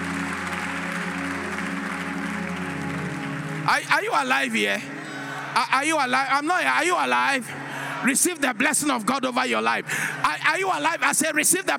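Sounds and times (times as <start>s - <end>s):
audience applause: 0.0s - 4.4s
speech: 3.7s - 5.0s, 5.6s - 11.7s.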